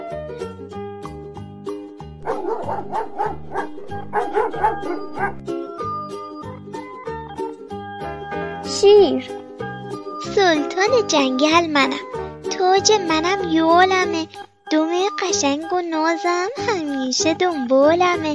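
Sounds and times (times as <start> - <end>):
dog barking: 2.2 - 5.4
speech: 2.7 - 5.5, 8.8 - 9.3, 10.3 - 12.1, 12.7 - 18.3.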